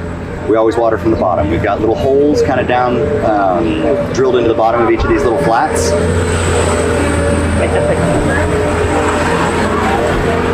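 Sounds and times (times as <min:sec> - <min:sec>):
loud passing vehicle with worn suspension: 0:00.0 - 0:10.5
speech: 0:00.5 - 0:08.8
laughter: 0:06.6 - 0:10.5.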